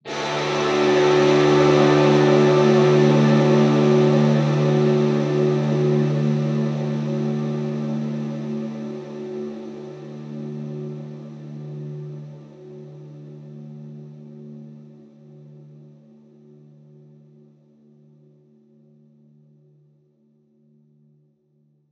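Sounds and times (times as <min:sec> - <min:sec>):
D major guitar chords: 0:00.1 - 0:12.4.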